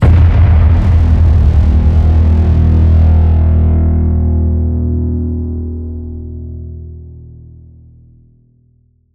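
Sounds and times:
designed sci-fi cinematic hits: 0:00.0 - 0:06.4.

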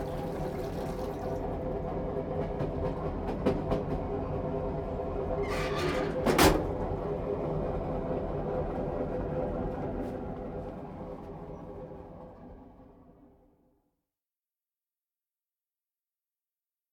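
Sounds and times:
train lavatory ambience: 0:00.3 - 0:13.3.

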